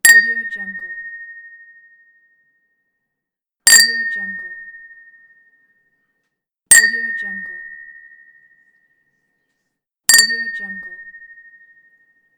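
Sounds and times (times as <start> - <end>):
glass clink: 3.7 - 4.1, 6.7 - 7.2, 10.1 - 10.6.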